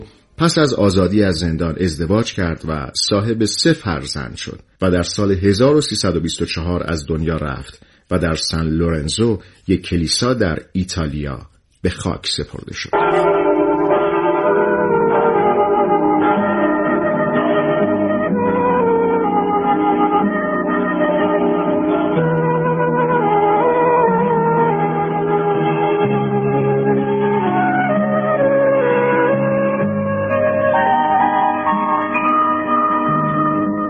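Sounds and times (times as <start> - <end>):
speech: 0.0 - 13.6
song from an animated series soundtrack: 12.9 - 33.8.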